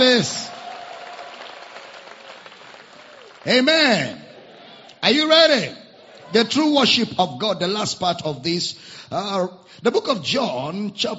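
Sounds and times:
speech: 0.0s - 0.5s, 3.4s - 4.2s, 5.0s - 11.1s
audience applause: 0.0s - 4.0s.

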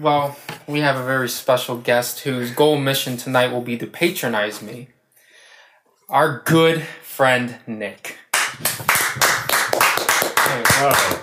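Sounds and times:
speech: 0.0s - 5.0s, 6.1s - 9.3s, 10.6s - 11.2s
clapping: 8.3s - 11.2s.

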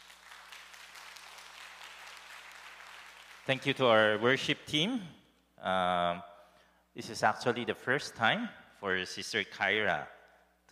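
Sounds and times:
audience applause: 0.0s - 3.4s
speech: 3.4s - 6.3s, 7.0s - 10.7s.

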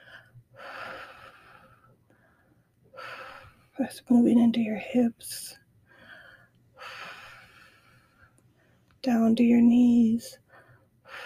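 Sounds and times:
slow deep breathing during a grief meditation: 0.0s - 3.8s, 5.8s - 8.9s, 10.4s - 11.2s
speech: 3.8s - 5.6s, 9.0s - 10.4s.

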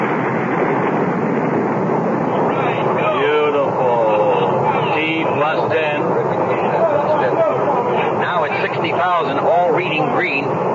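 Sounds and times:
rocket engines firing at liftoff: 0.0s - 10.7s.

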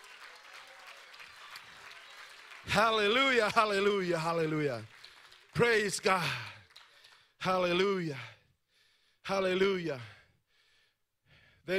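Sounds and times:
audience clapping: 0.0s - 7.9s
speech: 2.7s - 5.0s, 5.6s - 6.5s, 7.4s - 8.3s, 9.3s - 10.2s.

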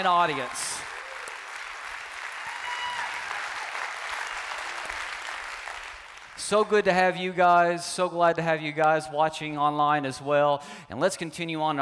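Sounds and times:
speech: 0.0s - 0.9s, 6.4s - 11.8s
church congregation applauding: 0.0s - 7.7s.

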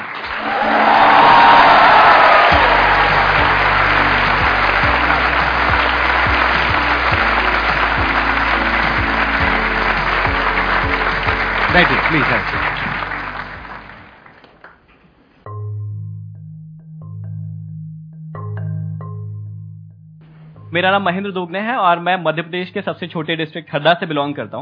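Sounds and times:
crowd cheering: 0.0s - 14.4s
audience applause: 0.0s - 14.8s
speech: 11.8s - 12.7s, 20.8s - 24.5s.

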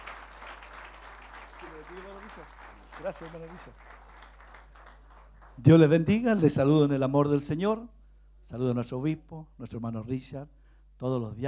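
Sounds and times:
applause: 0.0s - 6.0s
speech: 1.8s - 4.0s, 5.6s - 11.4s.

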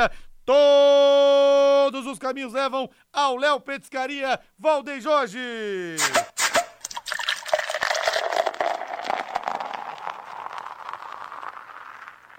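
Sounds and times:
speech: 0.0s - 6.4s
drink pouring into a glass: 6.8s - 12.3s.

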